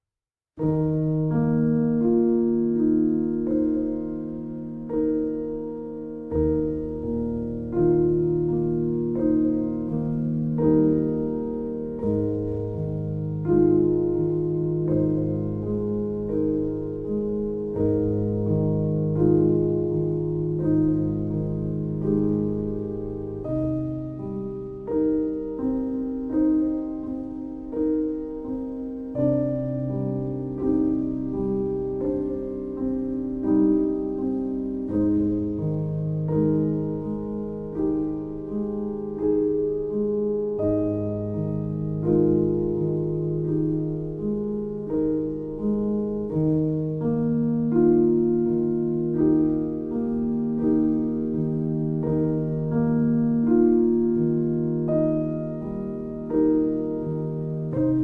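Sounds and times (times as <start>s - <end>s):
relaxing piano: 0.6s - 58.0s.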